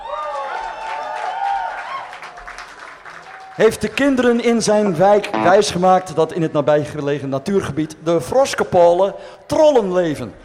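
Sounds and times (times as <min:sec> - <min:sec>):
audience applause: 0:00.0 - 0:04.0
speech: 0:03.6 - 0:10.4.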